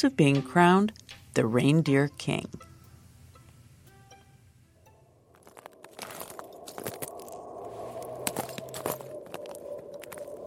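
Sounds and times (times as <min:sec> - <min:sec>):
speech: 0:00.0 - 0:02.7
footsteps on frozen lake ice: 0:05.3 - 0:10.4.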